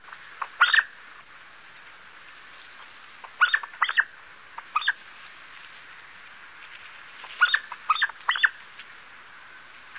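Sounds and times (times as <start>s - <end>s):
pin-tailed sandgrouse calls: 0.0s - 1.0s, 2.8s - 5.1s, 7.2s - 8.9s.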